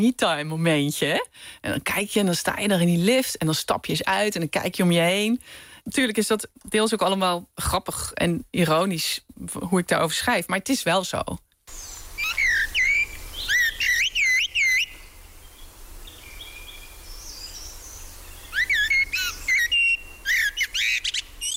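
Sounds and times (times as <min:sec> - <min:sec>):
speech: 0:00.0 - 0:11.9
blackbird song: 0:11.7 - 0:21.5.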